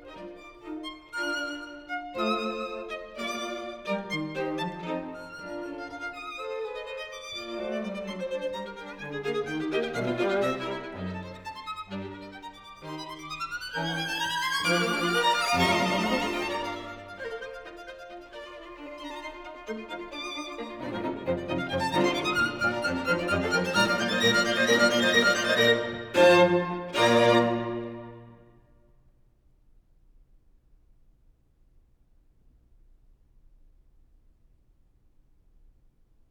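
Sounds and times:
string quartet: 0.0s - 28.4s.

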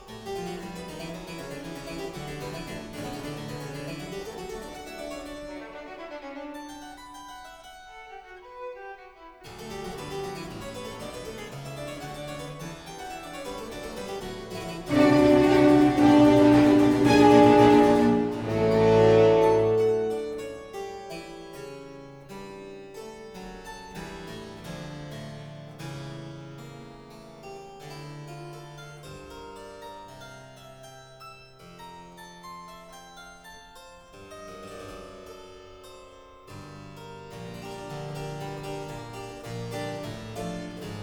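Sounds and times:
keyboard concerto allegro: 14.7s - 20.9s.

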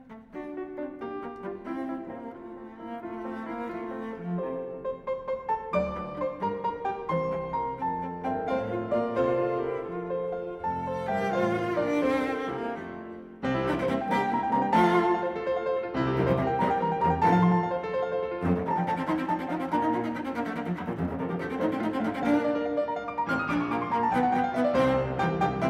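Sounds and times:
cello and piano sonata rondo allegro vivace: 0.0s - 25.6s.

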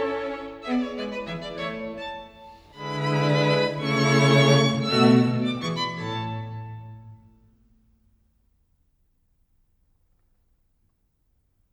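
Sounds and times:
string quartet minuet in A major: 0.0s - 7.3s.

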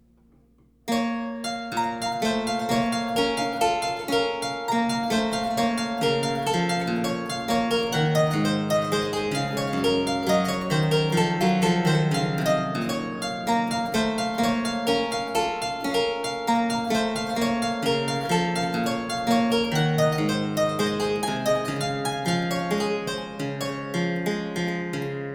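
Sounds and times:
minuet and trio music: 0.9s - 25.2s.

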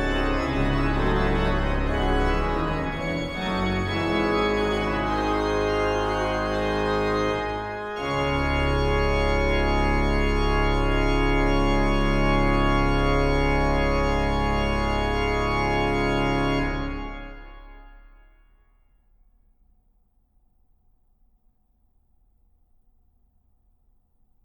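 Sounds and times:
fugue: 0.0s - 17.0s.

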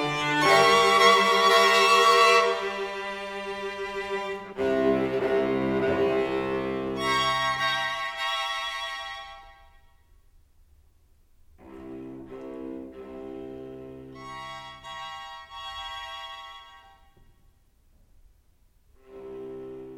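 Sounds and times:
string quartet playing in F major: 0.0s - 9.5s, 11.6s - 17.0s, 19.0s - 19.9s.

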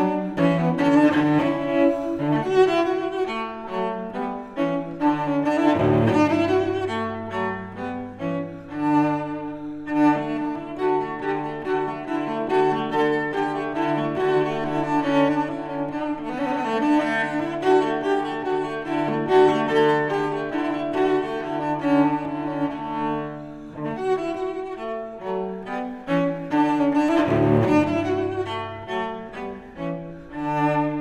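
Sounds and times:
solo cello suite: 0.0s - 31.0s.

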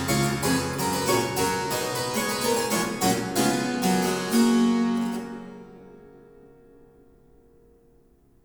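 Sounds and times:
harpsichord: 0.0s - 6.3s.

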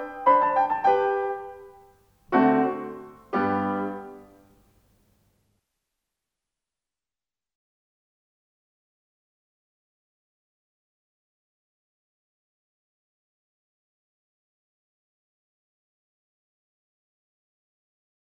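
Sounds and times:
piano sonata in G major: 0.0s - 4.6s.

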